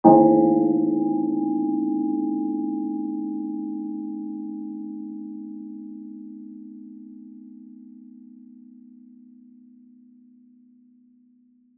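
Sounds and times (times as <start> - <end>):
church bell ringing: 0.0 - 6.6.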